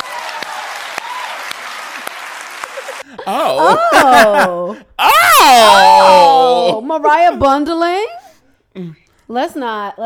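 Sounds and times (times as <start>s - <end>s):
crowd applause: 0.0s - 3.1s
laughter: 2.6s - 4.9s
speech: 3.3s - 8.1s, 8.8s - 10.0s.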